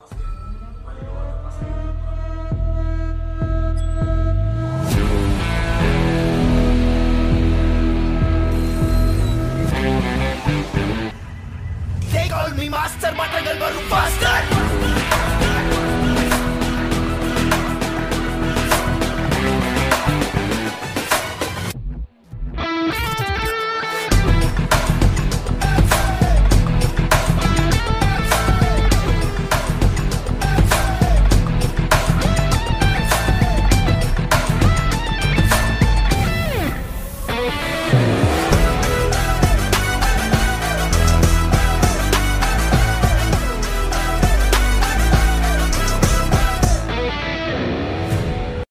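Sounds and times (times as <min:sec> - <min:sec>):
background music: 0:00.0 - 0:48.6.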